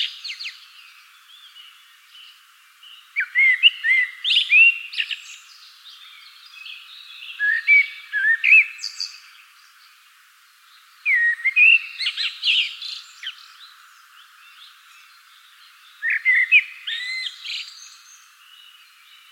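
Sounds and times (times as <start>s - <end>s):
common blackbird song: 0.0s - 19.3s
other birds chirping: 0.0s - 19.3s.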